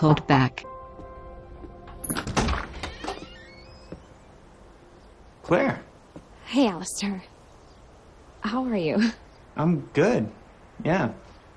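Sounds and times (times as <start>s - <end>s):
speech: 0.0s - 0.7s, 5.5s - 5.9s, 6.5s - 7.3s, 8.4s - 11.2s
front door being answered: 1.5s - 4.4s.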